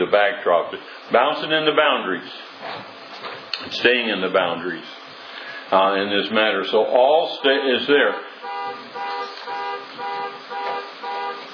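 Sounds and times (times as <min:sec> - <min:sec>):
speech: 0:00.1 - 0:03.0, 0:03.6 - 0:05.0, 0:05.7 - 0:08.3
car alarm blaring: 0:08.2 - 0:11.5.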